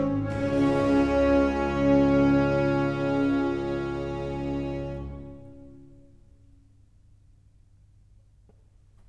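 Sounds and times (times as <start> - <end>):
concerto grosso in D minor: 0.0 - 6.3.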